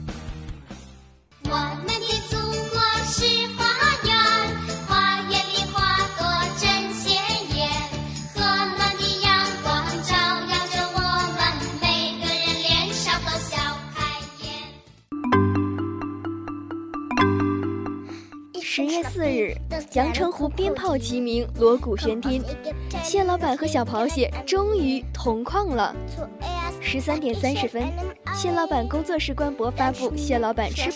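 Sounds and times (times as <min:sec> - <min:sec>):
patriotic children's song instrumental: 0:01.3 - 0:30.9
speech: 0:19.5 - 0:30.9.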